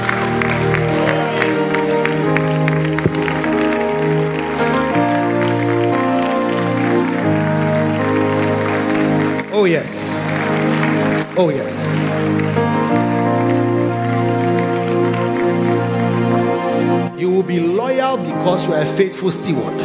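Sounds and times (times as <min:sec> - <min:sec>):
crowd audience clapping: 0:00.0 - 0:17.1
speech: 0:09.6 - 0:10.0, 0:11.4 - 0:12.6, 0:18.4 - 0:19.8.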